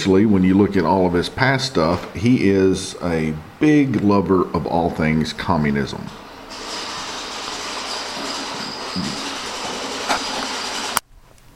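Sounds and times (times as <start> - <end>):
speech: 0.0 - 6.2, 9.0 - 9.2
robot vacuum whirring with a high motor whine: 6.5 - 11.0.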